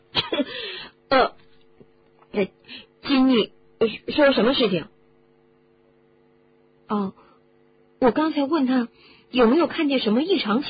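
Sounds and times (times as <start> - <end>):
man coughing after choking on tea: 0.1 - 0.6
speech: 1.1 - 1.4, 2.4 - 4.9, 8.1 - 10.6.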